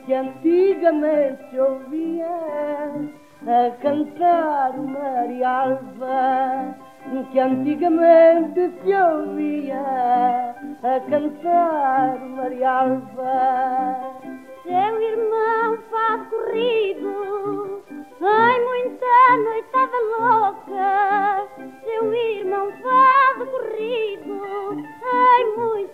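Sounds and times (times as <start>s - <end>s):
fado music: 0.0s - 25.9s.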